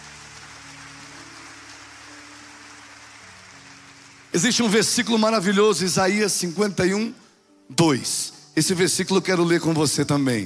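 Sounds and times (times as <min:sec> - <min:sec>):
audience applauding: 0:00.0 - 0:05.6
speech: 0:04.3 - 0:10.4.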